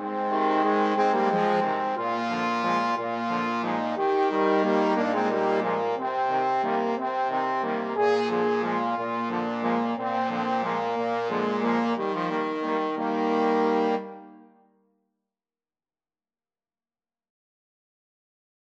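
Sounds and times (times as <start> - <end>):
trombone quartet playing: 0.0 - 14.3.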